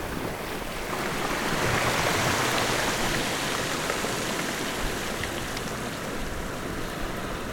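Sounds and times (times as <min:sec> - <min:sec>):
surf on gravel at Big Island: 0:00.0 - 0:07.4.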